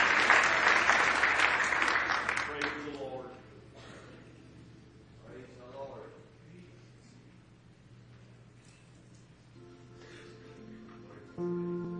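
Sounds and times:
audience applause: 0:00.0 - 0:03.1.

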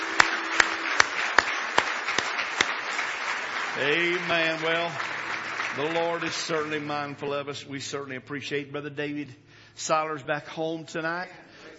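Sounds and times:
audience hand clapping: 0:00.0 - 0:07.4
speech: 0:03.8 - 0:05.2, 0:05.8 - 0:11.4.

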